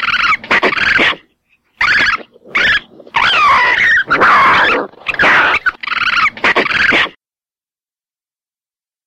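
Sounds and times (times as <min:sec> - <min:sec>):
raccoons fighting: 0:00.0 - 0:07.2.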